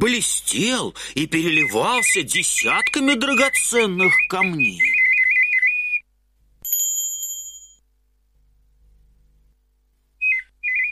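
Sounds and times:
speech: 0.0s - 5.0s
mechanical nightingale singing: 1.2s - 6.1s, 10.2s - 10.9s.

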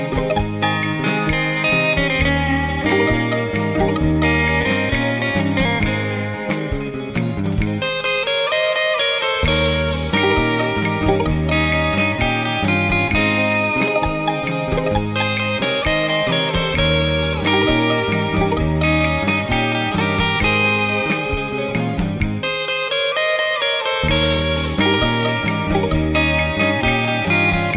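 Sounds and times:
guitar: 0.0s - 27.7s.

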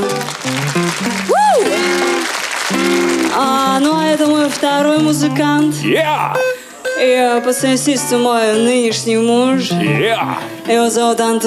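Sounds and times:
audience applause: 0.0s - 4.9s
speech: 4.6s - 11.4s.

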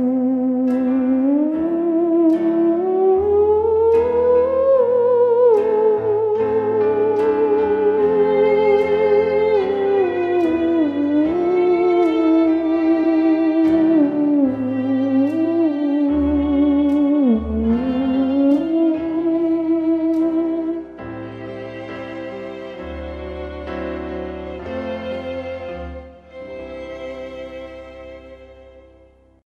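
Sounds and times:
theremin: 0.0s - 20.8s.

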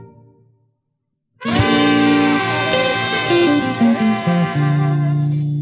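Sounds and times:
orchestra: 1.4s - 5.5s.

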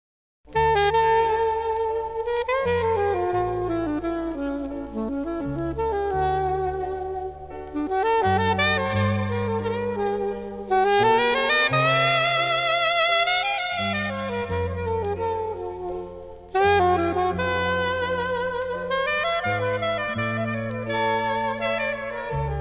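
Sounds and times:
saxophone: 0.5s - 22.6s.

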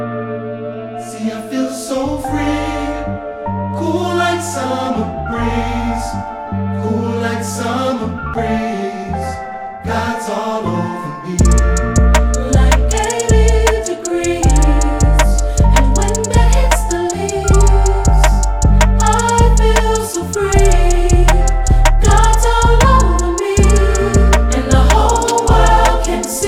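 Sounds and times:
choir singing: 1.0s - 26.4s.

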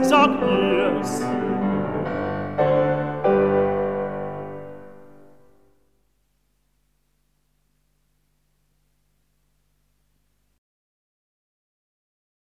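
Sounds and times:
piano: 0.0s - 6.1s.

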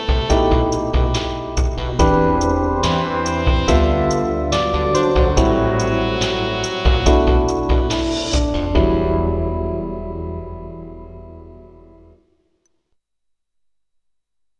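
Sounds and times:
lofi hip hop song: 0.0s - 9.7s.

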